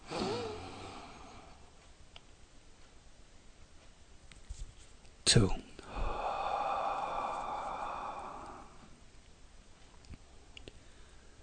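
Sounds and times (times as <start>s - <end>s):
deep inhale during a guided relaxation exercise: 0.0s - 1.7s, 5.8s - 9.1s, 10.7s - 11.4s
speech: 5.3s - 5.7s.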